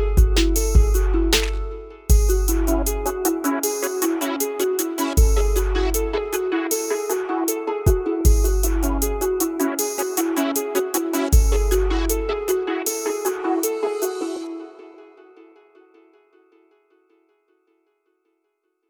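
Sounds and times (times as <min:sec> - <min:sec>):
rhythm at 78 bpm: 0:00.0 - 0:14.5.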